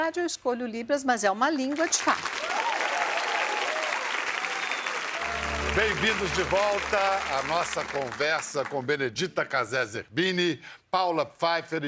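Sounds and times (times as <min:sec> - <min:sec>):
speech: 0:00.0 - 0:02.8, 0:05.8 - 0:11.8
audience applause during a conversation event: 0:01.8 - 0:08.8.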